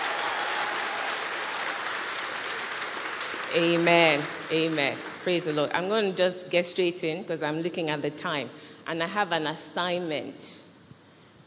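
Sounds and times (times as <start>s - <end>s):
people clapping for themselves: 0.0s - 5.6s
speech: 3.5s - 10.7s.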